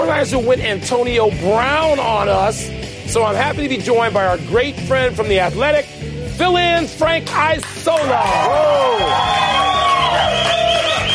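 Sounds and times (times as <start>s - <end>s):
speech: 0.1s - 9.6s
crowd cheering: 8.0s - 11.1s.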